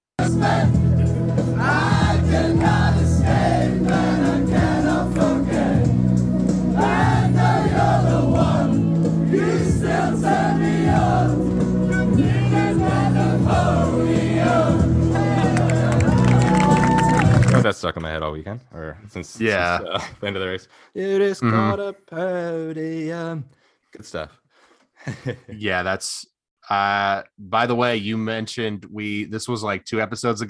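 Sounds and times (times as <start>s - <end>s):
paddock crowd singing a song: 0.2s - 16.5s
speech: 0.3s - 0.8s, 17.8s - 24.4s, 25.0s - 30.4s
laughter: 19.7s - 20.6s, 25.0s - 25.6s.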